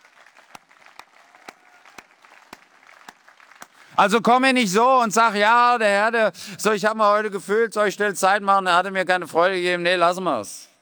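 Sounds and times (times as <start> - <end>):
audience applause: 0.0 - 4.2
speech: 4.0 - 10.7.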